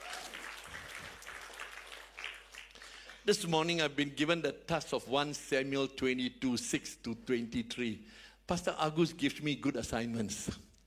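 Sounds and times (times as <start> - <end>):
audience clapping: 0.0 - 3.5
speech: 3.2 - 10.7.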